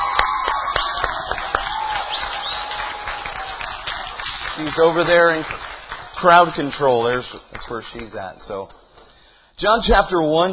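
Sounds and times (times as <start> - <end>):
audience applause: 0.0 - 8.3
speech: 4.6 - 8.8, 9.6 - 10.5.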